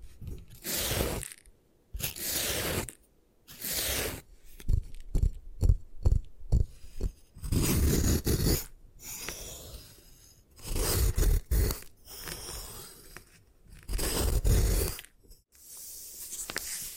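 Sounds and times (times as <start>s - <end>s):
gym chalk being destroyed: 0.6s - 9.9s, 10.6s - 15.2s.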